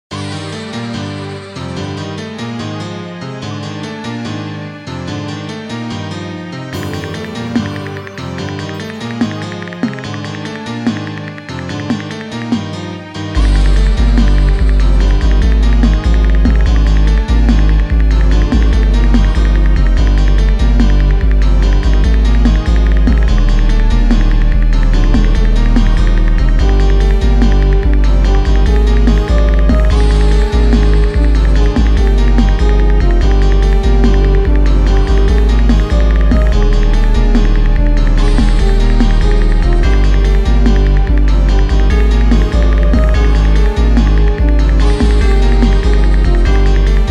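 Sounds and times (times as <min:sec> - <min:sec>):
instrumental music: 0:00.1 - 0:47.1.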